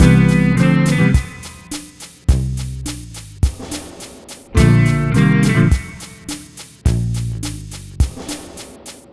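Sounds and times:
multiple guitars playing bossa nova: 0.0s - 2.4s, 4.6s - 7.6s.

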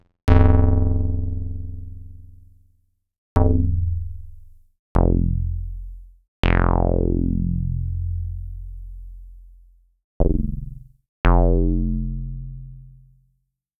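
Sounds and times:
Roland SH-09 synth bass: 0.3s - 2.3s, 3.4s - 8.6s, 10.2s - 12.9s.

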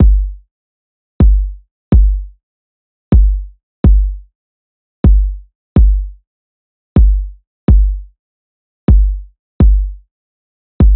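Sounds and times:
125 kick drum loop: 0.0s - 0.4s, 1.2s - 2.3s, 3.1s - 4.2s, 5.0s - 6.2s, 7.0s - 8.1s, 8.9s - 10.0s, 10.8s - 10.9s.

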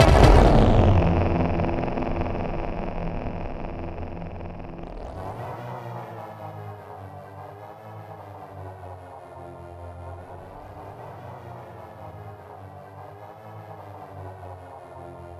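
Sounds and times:
synth line in C3: 0.0s - 5.3s.

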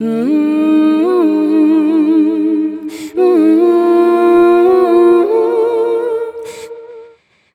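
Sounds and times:
female vocals melody in E flat: 0.0s - 7.2s.

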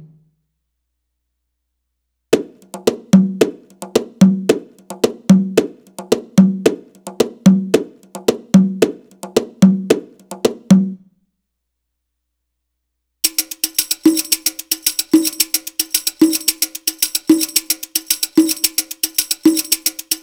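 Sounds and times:
Arabic rhythm percussion: 2.4s - 10.7s, 13.2s - 20.2s.

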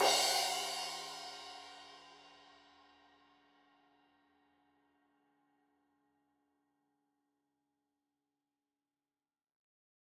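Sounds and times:
15 inch crash cymbal edge hit: 0.0s - 2.2s.

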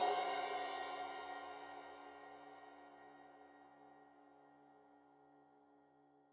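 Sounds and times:
15 inch crash cymbal edge hit: 0.0s - 1.7s.

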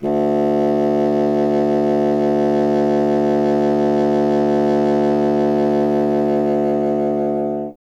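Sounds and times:
solo contrabassoon: 0.0s - 7.8s.

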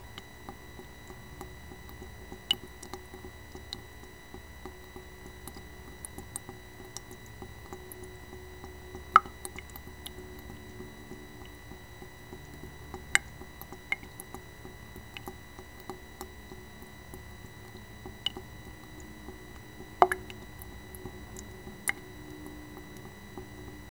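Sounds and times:
swamp water ambience: 0.0s - 23.9s.

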